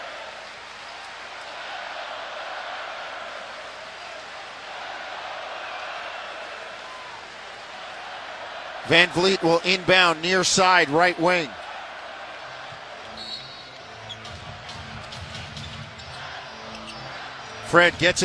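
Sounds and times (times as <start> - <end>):
arena crowd cheering: 0.0 - 18.2
speech: 8.9 - 11.6, 17.7 - 18.2.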